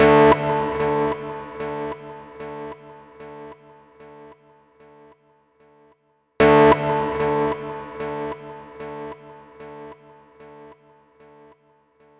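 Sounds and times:
guitar: 0:00.0 - 0:03.7, 0:06.4 - 0:10.2.

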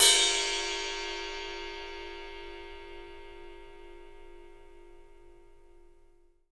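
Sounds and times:
ride cymbal, 3D drums: 0:00.0 - 0:03.5.

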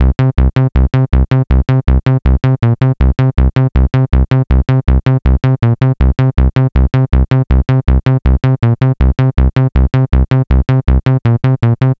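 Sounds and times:
bass loops: 0:00.0 - 0:11.9.

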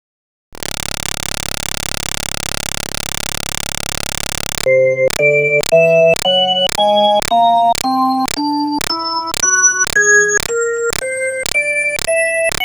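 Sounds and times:
Hammond B3 organ: 0:04.7 - 0:12.5.

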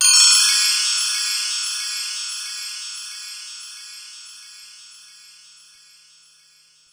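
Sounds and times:
Korg bell tree percussion: 0:00.0 - 0:02.1.

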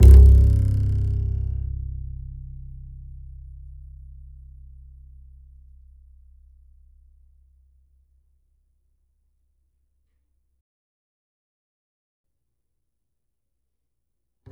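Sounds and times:
E note on the E string of an upright bass: 0:00.0 - 0:07.5.

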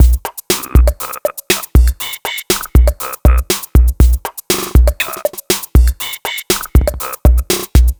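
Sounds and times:
drum loop: 0:00.0 - 0:07.9
mono vocal beat: 0:00.0 - 0:07.9.

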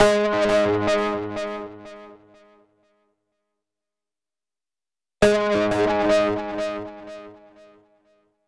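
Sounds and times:
synthesizer: 0:00.0 - 0:02.2, 0:05.2 - 0:07.8.

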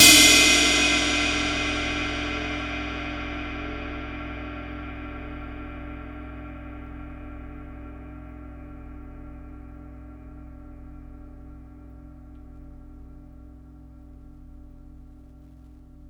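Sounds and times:
impact drum hits: 0:00.0 - 0:03.2
cymbal hit: 0:00.0 - 0:06.1.

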